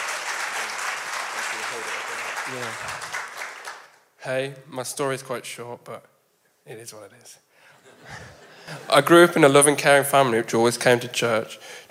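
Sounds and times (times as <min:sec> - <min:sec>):
audience applause: 0:00.0 - 0:04.0
speech: 0:01.7 - 0:03.2, 0:04.2 - 0:11.8
laughter: 0:07.8 - 0:09.1.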